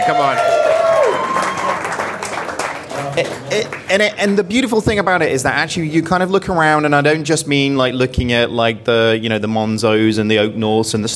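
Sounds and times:
speech: 0:00.0 - 0:00.5, 0:03.2 - 0:11.1
audience round of applause: 0:00.0 - 0:03.9.

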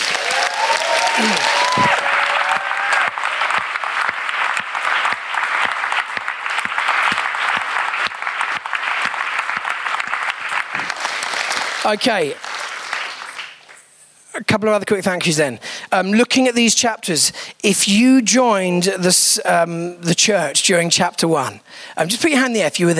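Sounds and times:
huge round of applause from audience: 0:00.0 - 0:13.9
speech: 0:11.9 - 0:12.4, 0:14.5 - 0:22.9.

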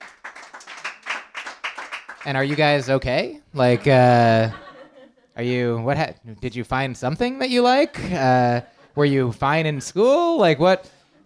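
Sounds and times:
audience clapping hands: 0:00.0 - 0:03.2
speech: 0:02.2 - 0:04.6, 0:05.4 - 0:11.2
laughter: 0:03.6 - 0:05.3, 0:07.8 - 0:09.3.

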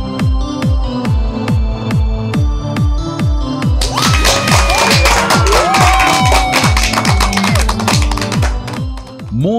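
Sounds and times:
pounding music beat: 0:00.2 - 0:09.5
crowd applause and cheering: 0:03.8 - 0:09.2.

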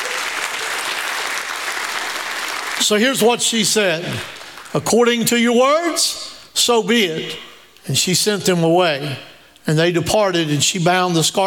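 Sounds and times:
crowd applause: 0:00.0 - 0:03.0
speech: 0:02.8 - 0:11.4.

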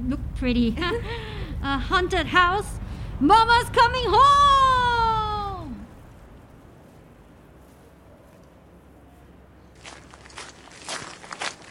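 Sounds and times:
speech: 0:00.1 - 0:04.6
footsteps of a small group walking through a tidy garden: 0:06.1 - 0:11.7.

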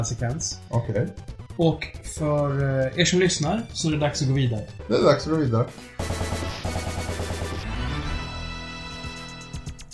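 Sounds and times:
speech: 0:00.0 - 0:06.9
video game machine-gun-style firing: 0:06.0 - 0:08.3.

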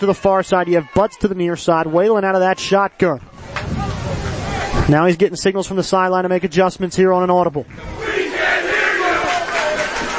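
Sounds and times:
speech: 0:00.0 - 0:03.9, 0:04.8 - 0:08.0
student sections cheering at football game: 0:00.0 - 0:04.9, 0:07.7 - 0:10.1.

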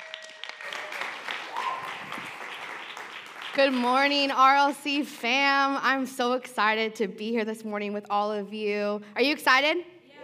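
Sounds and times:
church congregation applauding to welcome a speaker: 0:00.0 - 0:03.8
speech: 0:03.6 - 0:09.9.

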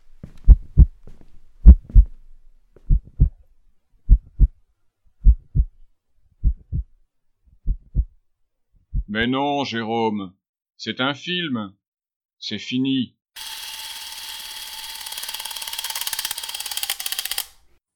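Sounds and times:
fast pounding heartbeat: 0:00.5 - 0:01.0, 0:01.6 - 0:02.1, 0:02.9 - 0:03.4, 0:04.1 - 0:04.6, 0:05.2 - 0:05.8, 0:06.4 - 0:07.0, 0:07.6 - 0:08.2, 0:08.9 - 0:09.2
speech: 0:09.1 - 0:11.8, 0:12.4 - 0:13.5.

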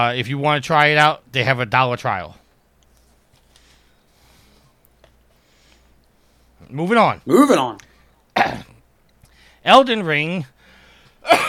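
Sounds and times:
speech: 0:00.0 - 0:02.4, 0:06.7 - 0:08.7, 0:09.6 - 0:10.5, 0:11.2 - 0:11.4
sneeze: 0:08.4 - 0:08.8.

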